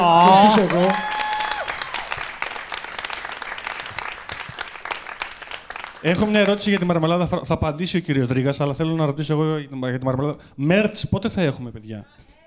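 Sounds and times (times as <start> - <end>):
audience applause: 0.0 - 7.0
speech: 0.1 - 1.1, 6.0 - 12.3.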